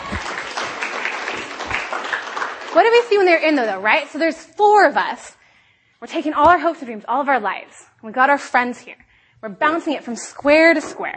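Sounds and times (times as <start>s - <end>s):
audience applause: 0.0s - 3.2s
speech: 2.8s - 5.4s, 6.0s - 11.1s.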